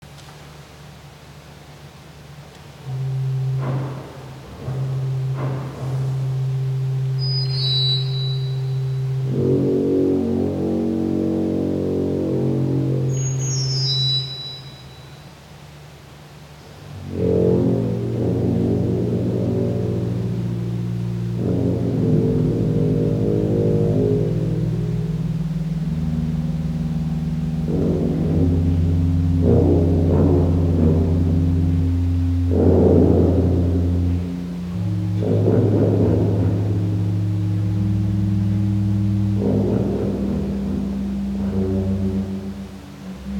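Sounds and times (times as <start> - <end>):
improvised music: 2.6 - 43.3.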